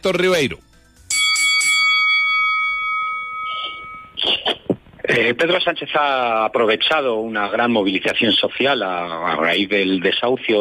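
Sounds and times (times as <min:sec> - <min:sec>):
speech: 0:00.0 - 0:00.7, 0:05.2 - 0:10.5
debate turn bell ringing: 0:01.1 - 0:04.2.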